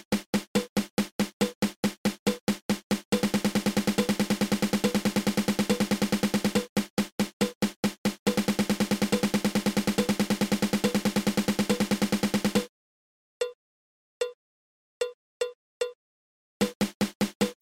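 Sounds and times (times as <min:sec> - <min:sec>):
drum double stroke roll: 0:00.0 - 0:12.7, 0:16.6 - 0:17.6.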